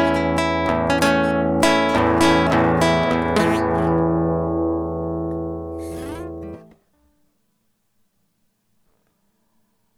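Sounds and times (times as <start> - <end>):
guitar: 0.0 - 6.9.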